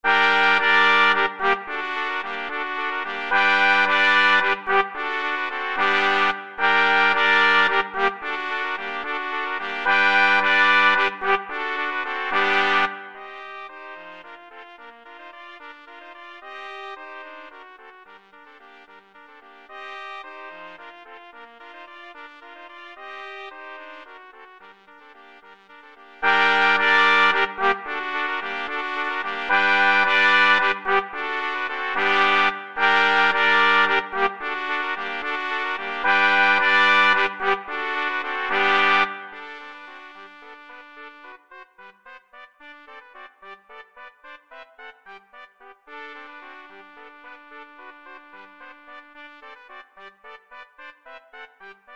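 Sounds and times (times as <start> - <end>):
trumpet quartet playing: 0.0 - 13.4, 26.2 - 41.2.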